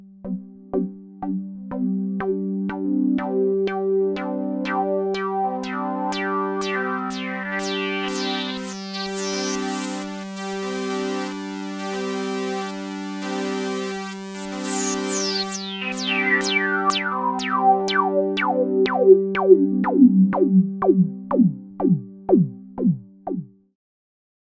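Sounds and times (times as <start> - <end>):
music record from an LP: 0.3 - 23.5.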